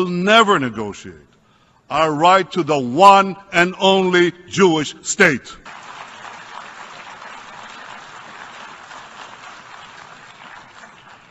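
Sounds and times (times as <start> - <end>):
speech: 0.0 - 1.3, 1.9 - 5.8
sustained applause at the General Assembly: 5.6 - 11.2.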